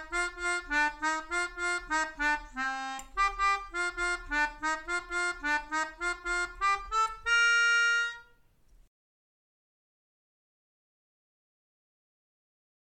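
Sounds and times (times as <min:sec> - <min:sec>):
national anthem played on melodica: 0:00.0 - 0:08.4.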